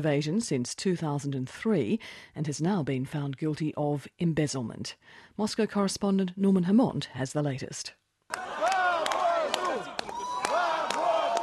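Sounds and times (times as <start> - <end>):
speech: 0.0 - 8.4
crowd shouting and chanting outside court: 8.3 - 11.4.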